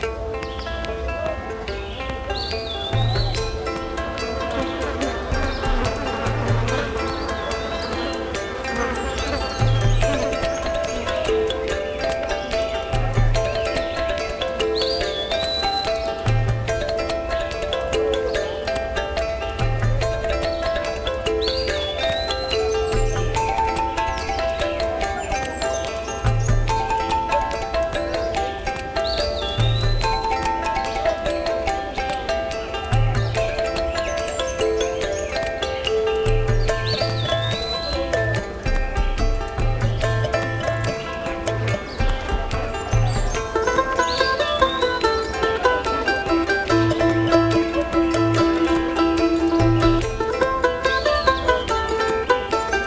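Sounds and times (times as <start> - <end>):
garden ambience: 0.0 - 52.8.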